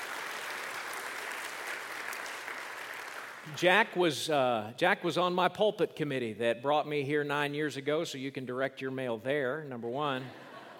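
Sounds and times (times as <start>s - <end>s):
audience applause: 0.0s - 3.6s
speech: 3.4s - 10.4s
laughter: 10.2s - 10.7s.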